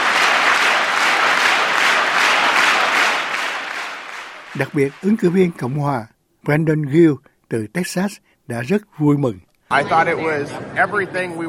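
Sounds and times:
crowd cheering and applauding: 0:00.0 - 0:05.8
speech: 0:04.6 - 0:11.4.

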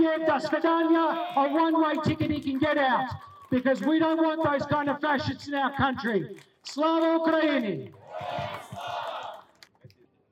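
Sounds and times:
speech: 0:00.0 - 0:09.0
crowd shouting and cheering: 0:00.2 - 0:02.0, 0:07.5 - 0:09.6.

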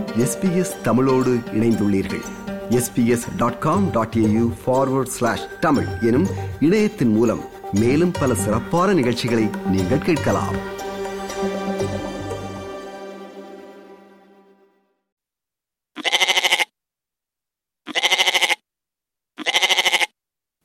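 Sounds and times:
music: 0:00.0 - 0:15.1
speech: 0:00.2 - 0:10.7
goats bleating: 0:16.0 - 0:16.7, 0:17.9 - 0:18.6, 0:19.4 - 0:20.1.

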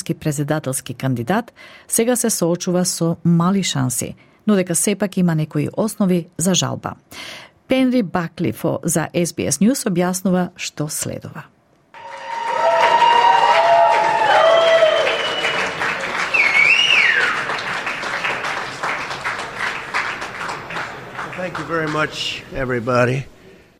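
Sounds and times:
speech: 0:00.1 - 0:11.6, 0:21.5 - 0:23.3
supporters applauding Donald Trump's arrival at Trump Tower in Manhattan: 0:12.0 - 0:22.4.

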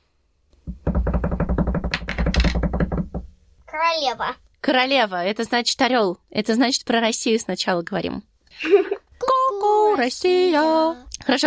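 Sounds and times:
hand-tapped drum roll: 0:00.7 - 0:03.4
speech: 0:03.8 - 0:08.9, 0:10.0 - 0:11.4
laughter: 0:08.6 - 0:09.0.

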